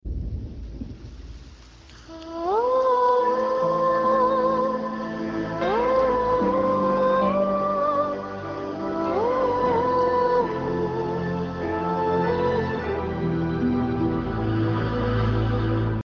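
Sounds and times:
sad music theme: 2.1 - 16.0.

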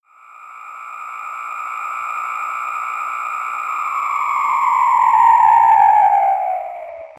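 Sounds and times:
sci-fi sound: 3.5 - 7.1.

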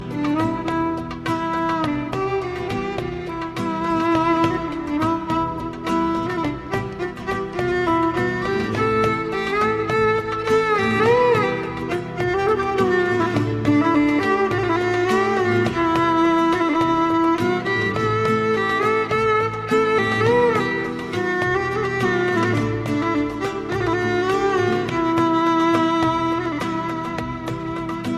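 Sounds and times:
drunk violin: 0.0 - 28.1.

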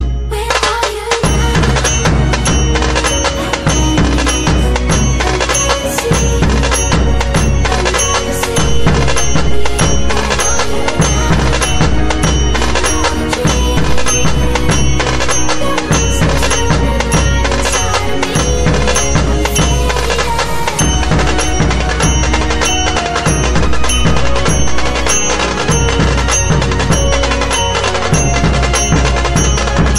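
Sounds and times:
dhol tasha drumming: 0.5 - 29.9.

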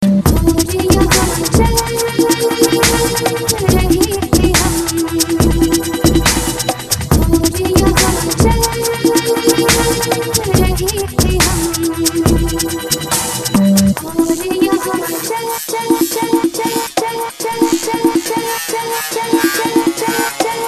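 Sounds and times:
eastern jam music: 0.2 - 20.6.

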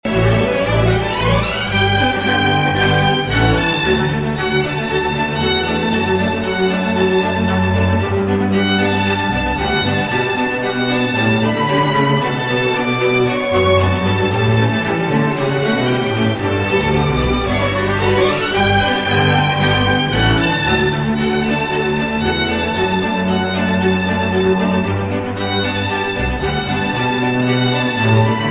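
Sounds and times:
string instrument: 0.0 - 28.5.

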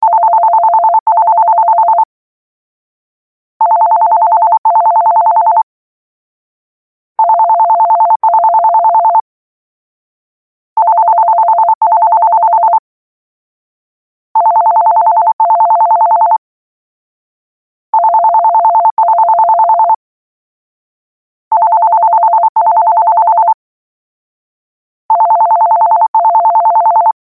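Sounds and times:
landline phone ringing: 0.0 - 2.1, 3.6 - 5.7, 7.2 - 9.2, 10.8 - 12.8, 14.4 - 16.4, 17.9 - 20.0, 21.5 - 23.6, 25.1 - 27.2.

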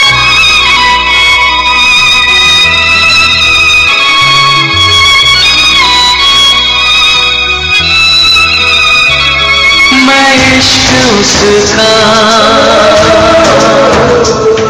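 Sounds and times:
theme tone: 0.1 - 14.6.

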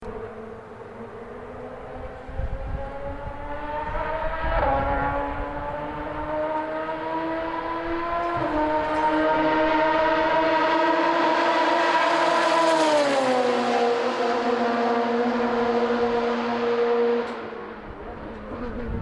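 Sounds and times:
Porsche RS Spyder race car engine: 0.0 - 18.9.

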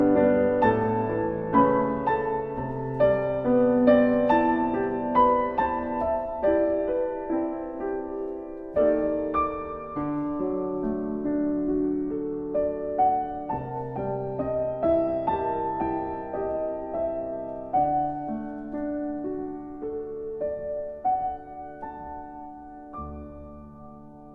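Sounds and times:
piano: 0.0 - 24.3.

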